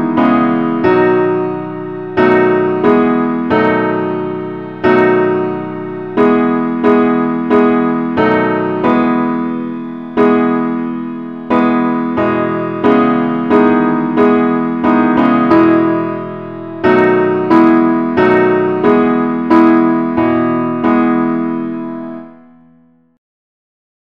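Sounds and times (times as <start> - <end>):
musical accompaniment in the key of E: 0.0 - 22.5.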